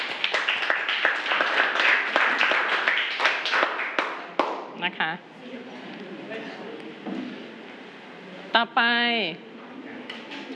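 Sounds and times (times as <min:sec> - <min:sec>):
students clapping: 0:00.0 - 0:04.7
speech: 0:05.1 - 0:05.7, 0:08.6 - 0:09.5.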